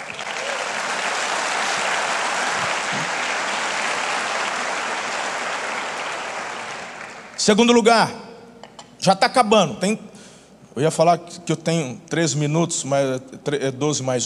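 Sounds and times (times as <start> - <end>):
audience applause: 0.0 - 7.4
speech: 7.4 - 8.2, 9.0 - 10.1, 10.8 - 14.2.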